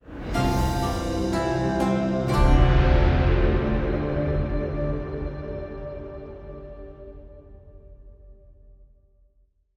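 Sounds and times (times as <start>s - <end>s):
music stinger: 0.3s - 8.0s.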